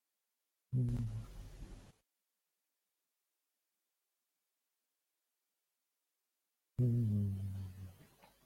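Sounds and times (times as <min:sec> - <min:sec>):
hum: 0:00.7 - 0:02.0, 0:06.8 - 0:08.3.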